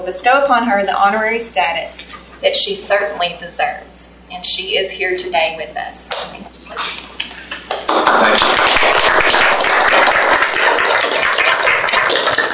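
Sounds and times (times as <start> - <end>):
speech: 0.0 - 7.0
audience applause: 7.7 - 12.5.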